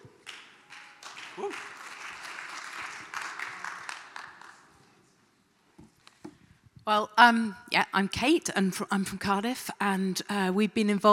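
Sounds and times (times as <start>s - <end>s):
audience applause: 0.0s - 4.8s
speech: 1.4s - 1.8s, 6.9s - 11.1s.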